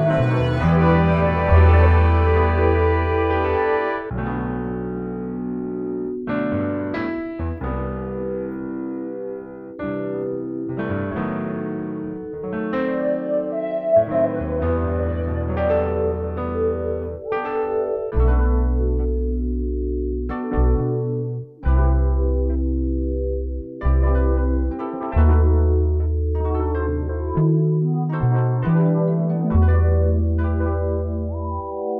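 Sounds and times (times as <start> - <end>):
melody: 0.0 - 31.9.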